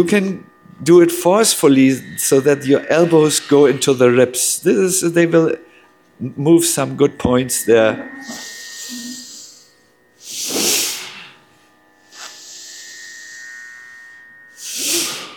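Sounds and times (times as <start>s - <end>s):
speech: 0.0s - 9.0s
faint steady hum: 0.0s - 15.3s
forceful nose breathing in Bhastrika Pranayama: 8.2s - 11.4s, 12.1s - 13.4s, 14.5s - 15.3s.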